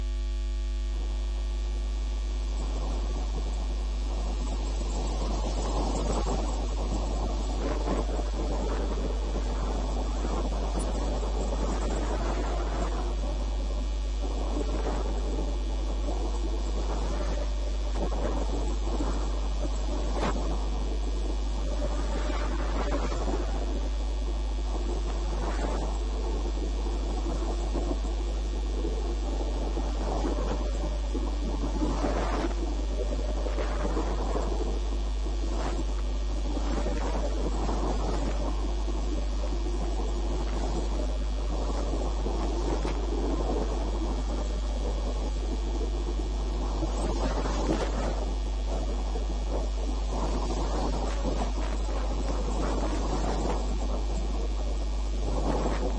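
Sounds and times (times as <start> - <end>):
4657 kHz shortwave radio signal: 0.0 - 55.9.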